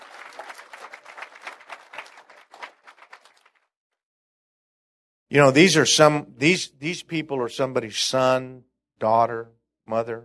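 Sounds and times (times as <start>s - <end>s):
audience clapping: 0.0s - 3.7s
speech: 5.3s - 10.2s.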